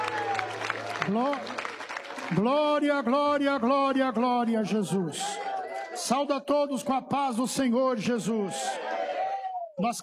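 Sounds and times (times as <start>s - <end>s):
audience applauding: 0.0s - 4.5s
speech: 1.0s - 1.6s, 2.3s - 5.5s, 6.1s - 8.8s, 9.8s - 10.0s.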